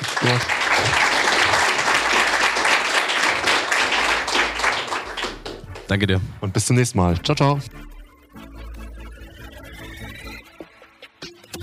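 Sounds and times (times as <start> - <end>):
audience applause: 0.0 - 6.0
speech: 0.2 - 1.2, 5.9 - 7.9.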